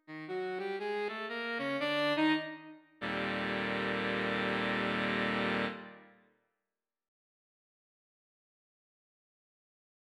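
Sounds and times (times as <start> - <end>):
saxophone: 0.0 - 6.1.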